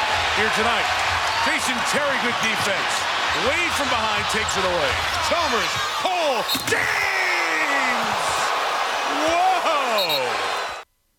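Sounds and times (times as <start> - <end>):
basketball arena crowd roaring: 0.0 - 10.8
speech: 0.4 - 7.2, 10.0 - 10.6
scattered shouts and voices in an arena crowd: 2.6 - 10.8.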